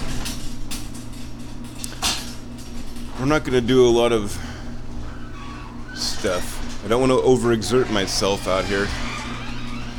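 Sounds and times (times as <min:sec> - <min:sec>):
garage door opening: 0:00.0 - 0:09.9
low hum: 0:00.0 - 0:09.9
speech: 0:03.2 - 0:04.5, 0:06.2 - 0:09.1.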